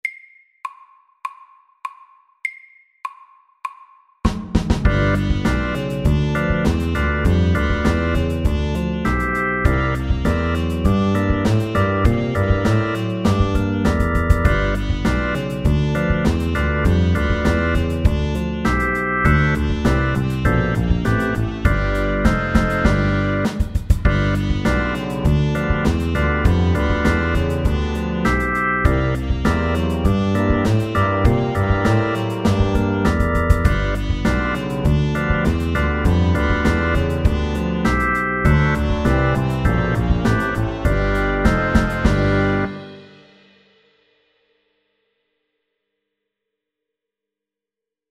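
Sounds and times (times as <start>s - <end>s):
eight bar blues music: 4.7s - 43.3s.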